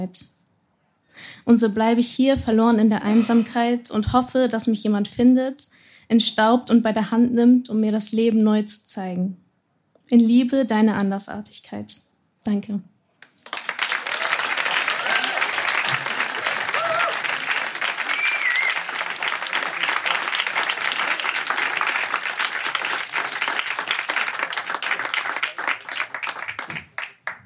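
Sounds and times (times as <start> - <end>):
speech: 0.0 - 0.4, 1.2 - 9.4, 10.1 - 12.9
sustained applause from a large audience: 13.2 - 27.4.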